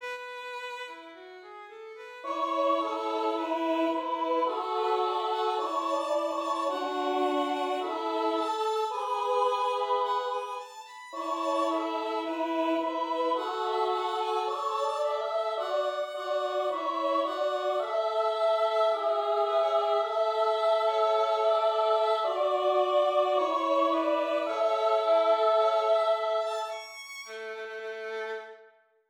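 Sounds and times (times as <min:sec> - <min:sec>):
choir singing: 0:02.2 - 0:26.9.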